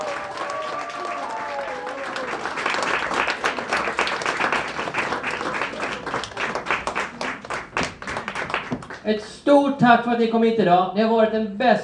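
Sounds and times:
crowd applause: 0.0s - 9.1s
speech: 9.0s - 11.8s.

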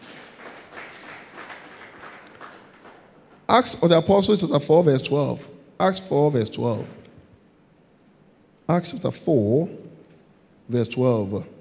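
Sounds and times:
audience clapping hands: 0.0s - 3.5s
speech: 3.5s - 7.0s, 8.7s - 9.8s, 10.7s - 11.5s.

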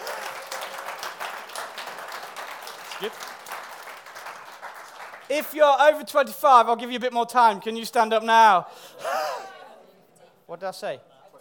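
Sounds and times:
crowd applause: 0.0s - 5.6s
speech: 3.0s - 3.4s, 5.3s - 9.0s, 10.5s - 11.1s.

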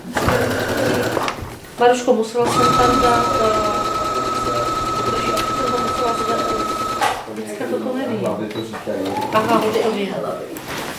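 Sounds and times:
sewing machine sewing fabric: 0.2s - 1.5s, 2.4s - 7.3s, 8.9s - 10.1s
speech: 1.8s - 3.7s, 7.5s - 10.8s.

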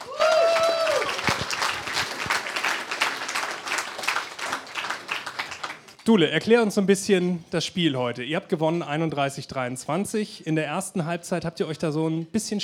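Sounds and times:
audience applause: 0.0s - 6.0s
speech: 6.1s - 12.6s.

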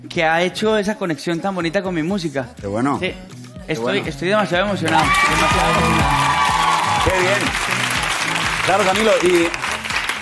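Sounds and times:
speech: 0.0s - 6.3s, 7.0s - 7.7s, 8.7s - 9.6s
audience applause and cheering: 4.8s - 10.1s.

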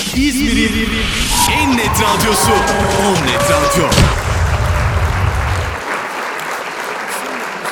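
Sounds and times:
speech: 0.2s - 4.3s
audience applause: 1.6s - 7.6s.

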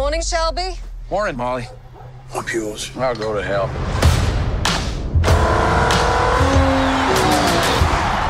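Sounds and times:
speech: 0.2s - 4.0s
Ferrari race car engines at the 24 Hours of Le Mans: 5.2s - 8.2s.

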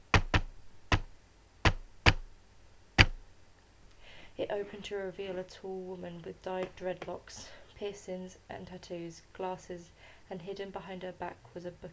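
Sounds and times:
rapid coded knocking on a door: 0.0s - 2.3s, 3.0s - 3.2s
speech: 4.4s - 11.9s.

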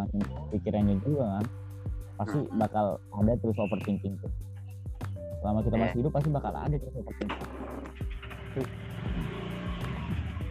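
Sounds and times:
speech: 0.2s - 1.6s, 2.2s - 4.6s, 5.4s - 9.3s
motorcycle engine running: 7.4s - 10.5s.

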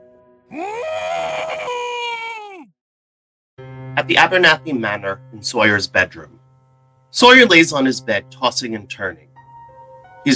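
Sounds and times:
person screaming into a pillow: 0.5s - 2.7s
speech: 4.0s - 6.4s, 7.1s - 9.3s.

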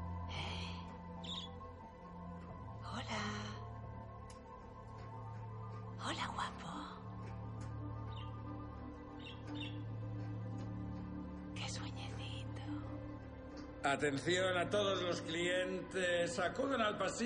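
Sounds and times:
small colourful caged birds chirping: 0.2s - 2.2s, 5.4s - 13.7s
speech: 13.8s - 17.2s.

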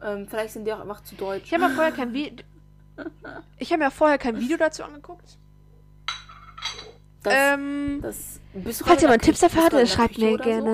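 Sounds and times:
speech: 0.0s - 5.4s, 7.2s - 10.7s
plate being set down: 6.0s - 7.0s.

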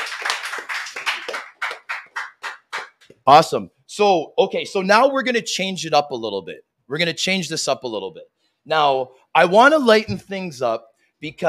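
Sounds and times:
applause from several people: 0.0s - 3.1s
speech: 3.2s - 11.4s.

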